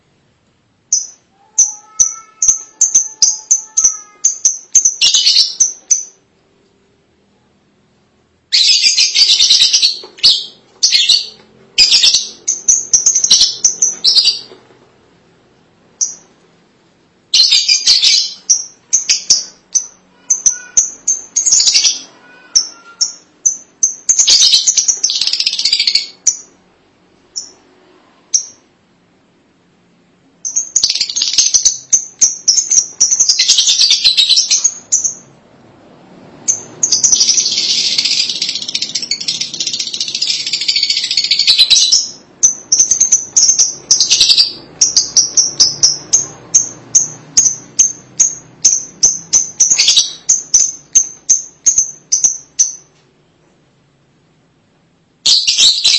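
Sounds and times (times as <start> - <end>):
lovebird chattering and chirping: 0.9 - 6.2, 8.5 - 14.6, 17.4 - 26.6, 30.4 - 35.3, 36.5 - 52.9, 55.3 - 55.9.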